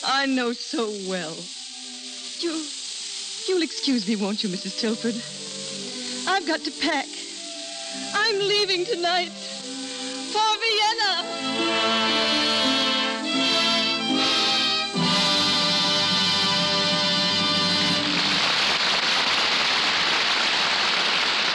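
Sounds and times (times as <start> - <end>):
music: 0.0 - 18.8
speech: 0.1 - 1.6, 2.4 - 2.8, 3.4 - 5.5, 6.3 - 7.2, 7.9 - 9.4, 10.3 - 12.0
audience applause: 15.1 - 21.5.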